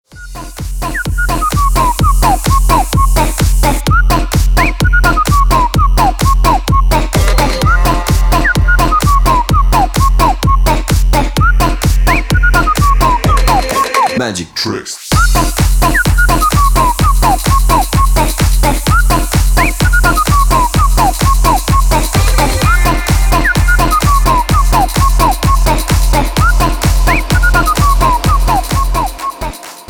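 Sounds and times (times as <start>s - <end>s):
funny music track for a call: 0.0s - 29.8s.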